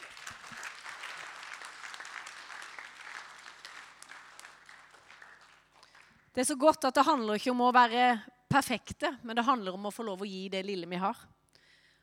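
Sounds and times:
audience applause: 0.0 - 6.2
speech: 6.4 - 11.3.

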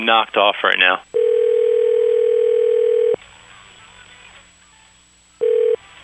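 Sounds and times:
speech: 0.0 - 1.2
loud phone dial tone: 1.2 - 3.2, 5.4 - 5.8.

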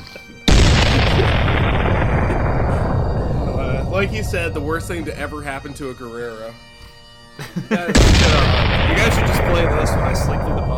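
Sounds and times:
cannon salute fire: 0.5 - 6.0, 8.0 - 10.7
speech: 4.0 - 6.7, 7.4 - 10.7
laughter: 7.4 - 8.1.

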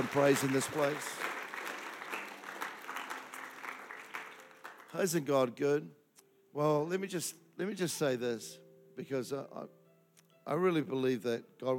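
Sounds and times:
audience clapping: 0.0 - 5.3
speech: 0.1 - 1.3, 4.9 - 6.0, 6.6 - 9.8, 10.4 - 11.7.

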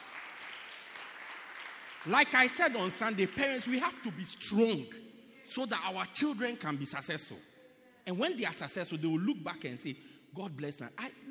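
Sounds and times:
crowd clapping: 0.0 - 4.8
speech: 2.0 - 11.2.

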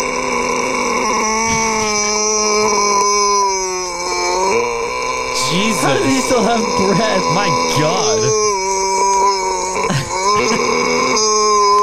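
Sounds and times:
person imitating a revving motorcycle engine: 0.0 - 11.8
speech: 5.9 - 8.5.

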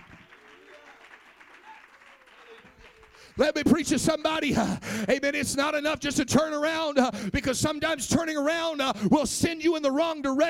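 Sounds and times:
audience clapping: 0.0 - 4.5
speech: 3.4 - 10.4.

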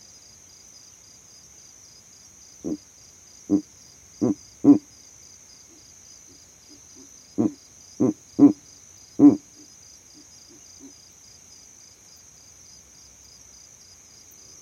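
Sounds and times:
insect trill: 0.0 - 14.6
Verreaux's eagle owl hooting: 4.2 - 4.9, 7.0 - 8.6, 9.2 - 9.7.

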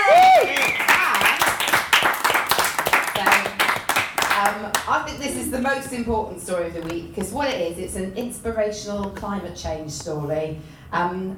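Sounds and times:
person whooping: 0.0 - 1.4
live audience applause: 0.0 - 4.5
speech: 5.3 - 11.3.

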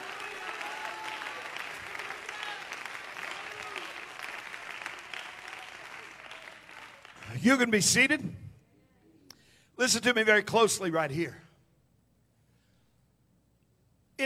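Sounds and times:
audience clapping hands: 0.0 - 7.8
speech: 7.4 - 8.4, 9.8 - 11.4.

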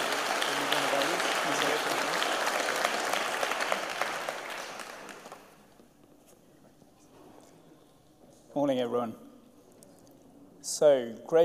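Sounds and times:
round of applause from a group: 0.0 - 5.7
speech: 8.6 - 9.2, 10.7 - 11.4.

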